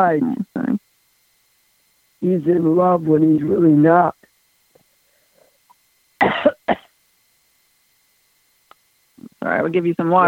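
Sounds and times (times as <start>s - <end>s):
speech: 0.0s - 0.8s, 2.2s - 4.3s, 6.2s - 6.8s, 9.4s - 10.2s
harsh raspy coughs from a lingering cold: 6.2s - 6.9s.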